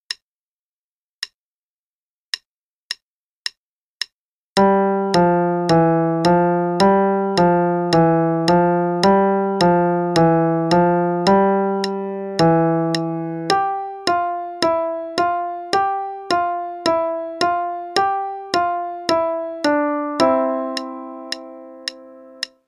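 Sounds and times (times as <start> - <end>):
legato melody: 4.6 - 22.5.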